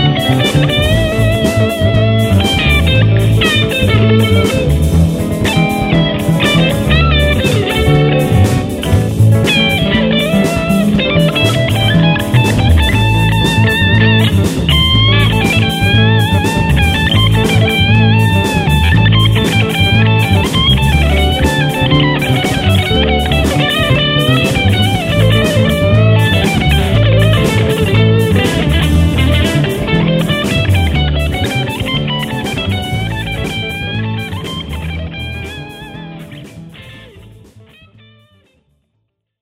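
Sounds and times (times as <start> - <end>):
blues solo guitar in A: 0.0 - 38.6.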